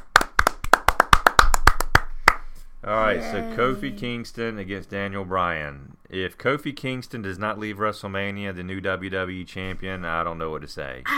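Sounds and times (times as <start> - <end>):
people clapping: 0.0 - 2.5
speech: 2.8 - 11.1.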